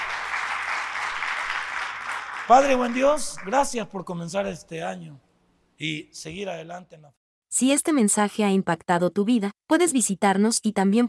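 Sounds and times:
audience applauding loudly: 0.0s - 3.8s
speech: 2.5s - 11.0s.

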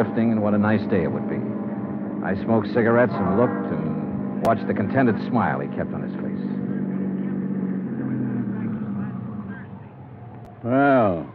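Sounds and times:
speech: 0.0s - 1.4s, 2.2s - 6.7s, 10.6s - 11.3s
car driving up a driveway: 0.0s - 11.3s.

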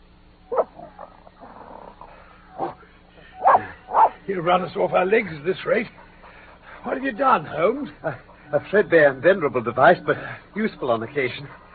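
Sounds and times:
dog on a leather leash growling and snuffling in a radio drama: 0.5s - 2.8s
speech: 4.3s - 6.1s, 6.8s - 11.6s.

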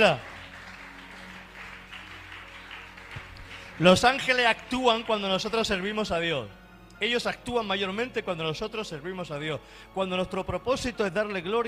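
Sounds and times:
speech: 0.0s - 0.3s, 3.8s - 11.6s
audience applauding: 0.0s - 6.1s.

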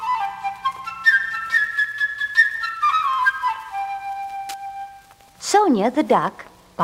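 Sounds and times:
flute playing a high melody: 0.0s - 5.3s
speech: 5.6s - 6.8s.

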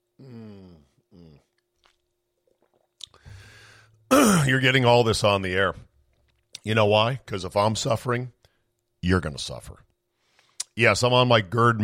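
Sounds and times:
person drinking water: 0.5s - 4.4s
person clearing throat: 4.1s - 4.6s
speech: 4.2s - 5.9s, 6.6s - 8.4s, 9.0s - 9.9s, 10.8s - 11.8s.

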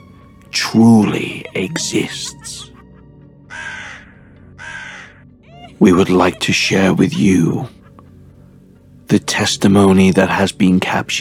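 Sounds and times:
speech: 0.7s - 2.7s, 5.8s - 7.8s, 9.1s - 11.2s
crow cawing: 2.0s - 8.4s.

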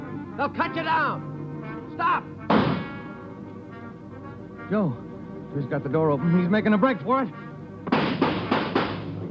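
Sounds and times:
speech: 0.4s - 1.3s, 2.0s - 2.7s, 4.7s - 8.2s
gunshots: 2.5s - 3.0s, 7.9s - 9.1s.

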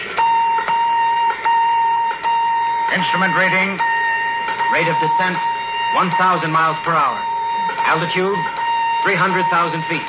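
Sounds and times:
radar sender humming with high electronic tone: 0.0s - 10.0s
speech: 2.9s - 4.0s, 4.7s - 10.0s.

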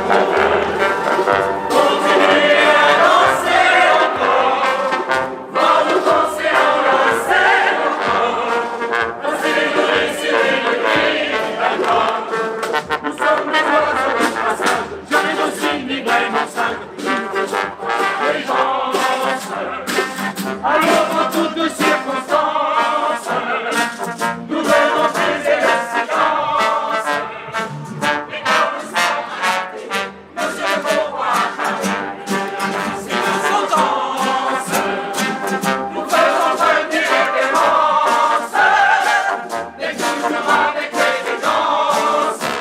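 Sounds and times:
flash mob crowd dancing in train station Gare de l'Est Paris: 0.0s - 42.5s.

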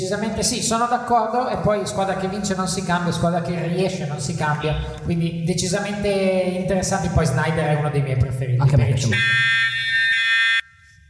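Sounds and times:
speech: 0.0s - 9.6s
buzzer: 9.1s - 10.8s.

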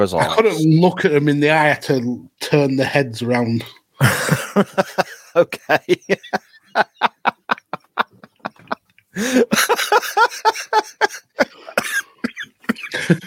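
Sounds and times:
speech: 0.0s - 6.9s
laughter: 4.0s - 12.0s, 12.6s - 13.2s
person coughing: 11.4s - 13.2s.

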